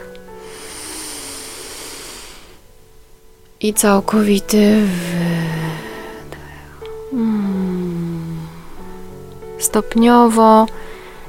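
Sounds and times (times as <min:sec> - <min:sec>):
deep inhale: 0:00.4 - 0:02.7, 0:04.9 - 0:09.1, 0:10.8 - 0:11.2
speech: 0:03.6 - 0:05.6, 0:09.7 - 0:10.8.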